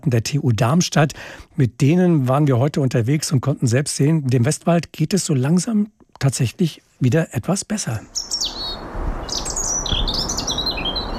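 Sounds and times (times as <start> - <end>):
speech: 0.0 - 8.4
European robin singing: 7.9 - 11.1.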